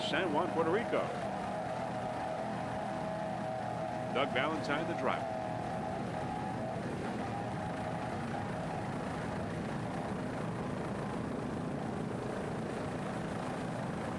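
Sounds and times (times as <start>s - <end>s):
Donzi F293 and other racing powerboat engines at full throttle in a Factory 2 race: 0.0s - 14.1s
speech: 0.1s - 1.3s, 4.2s - 5.4s.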